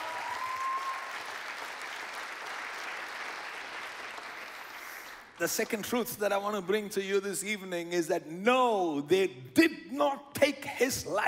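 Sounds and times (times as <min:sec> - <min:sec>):
audience clapping hands: 0:00.0 - 0:06.1
speech: 0:05.4 - 0:11.2.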